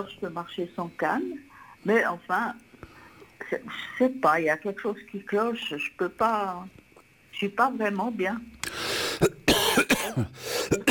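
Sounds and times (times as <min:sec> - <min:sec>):
speech: 0:00.0 - 0:02.7, 0:03.5 - 0:06.8, 0:07.4 - 0:08.6
gasping breaths: 0:08.6 - 0:09.3, 0:10.4 - 0:10.8
person coughing after something went down wrong: 0:09.2 - 0:10.8
throat clearing: 0:09.2 - 0:10.8.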